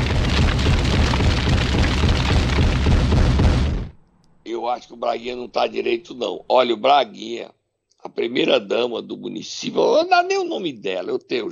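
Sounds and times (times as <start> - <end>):
MOAB bomb explosion sound effect, deep rumbling roar: 0.0 - 4.0
speech: 4.7 - 11.5.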